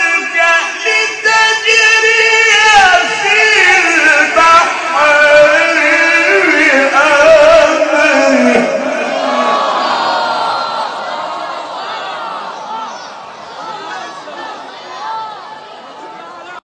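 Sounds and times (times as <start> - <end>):
Quran recitation: 0.0 - 10.3.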